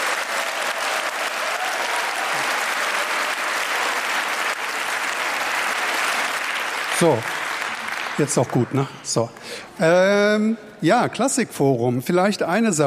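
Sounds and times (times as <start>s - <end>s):
applause: 0.0s - 9.0s
speech: 7.0s - 7.3s, 8.2s - 12.8s.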